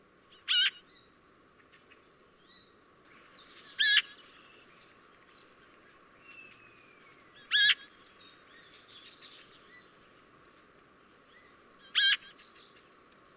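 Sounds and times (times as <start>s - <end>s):
Eurasian magpie giving loud harsh notes: 0.3s - 0.8s, 3.6s - 4.2s, 7.4s - 7.9s, 11.8s - 12.4s.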